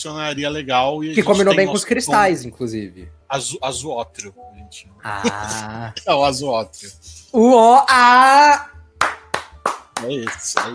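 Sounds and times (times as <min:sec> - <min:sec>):
speech: 0:00.0 - 0:08.7, 0:10.0 - 0:10.7
hand clapping applause: 0:09.0 - 0:10.7.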